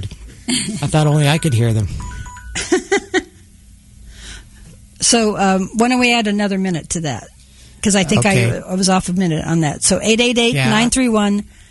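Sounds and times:
speech: 0:00.5 - 0:02.8, 0:05.1 - 0:11.6
timer beeping: 0:01.3 - 0:02.7.

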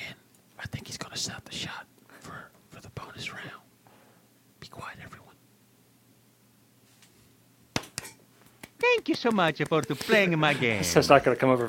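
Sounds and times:
speech: 0:01.2 - 0:01.9, 0:08.9 - 0:11.6
soft golf clap: 0:07.7 - 0:10.2.

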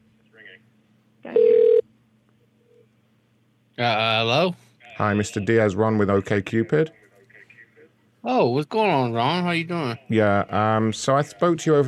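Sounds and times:
telephone ringback tone on an outgoing call: 0:01.3 - 0:01.8
speech: 0:03.8 - 0:07.0, 0:08.3 - 0:11.8.

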